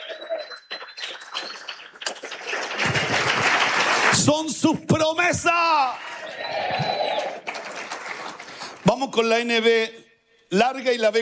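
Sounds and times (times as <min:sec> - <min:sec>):
audience applauding: 0:00.0 - 0:04.8, 0:05.8 - 0:08.9
speech: 0:04.2 - 0:06.8, 0:08.9 - 0:11.2.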